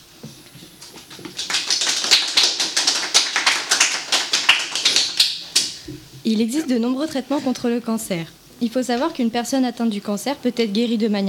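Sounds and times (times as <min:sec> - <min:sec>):
audience applause: 0:01.0 - 0:05.7
speech: 0:06.3 - 0:11.2.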